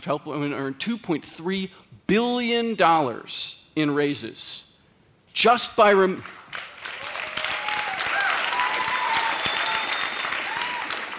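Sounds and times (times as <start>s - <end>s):
speech: 0.0s - 4.7s, 5.4s - 6.7s
audience clapping: 6.2s - 11.1s.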